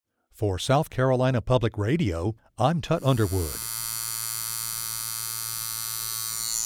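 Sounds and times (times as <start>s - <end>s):
speech: 0.4s - 3.7s
tattoo machine buzzing: 3.0s - 6.6s.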